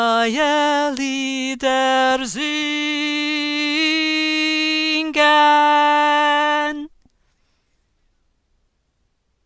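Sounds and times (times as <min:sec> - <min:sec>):
tenor singing: 0:00.0 - 0:07.0.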